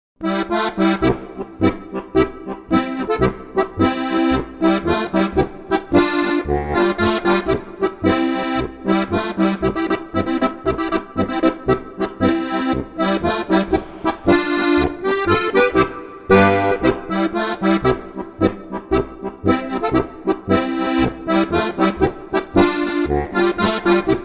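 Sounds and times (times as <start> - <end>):
polka music: 0.2 - 24.2.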